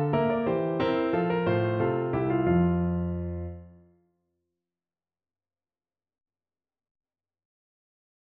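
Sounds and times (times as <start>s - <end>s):
bourree piano piece: 0.0s - 3.9s.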